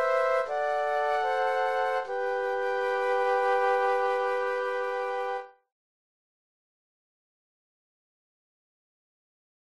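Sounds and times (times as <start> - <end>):
flute trio playing: 0.0 - 5.6.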